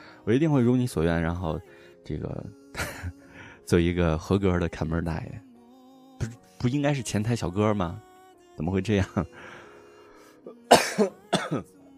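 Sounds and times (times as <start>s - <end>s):
speech: 0.2s - 5.5s, 6.2s - 9.5s, 11.0s - 11.8s
person coughing: 10.6s - 11.7s.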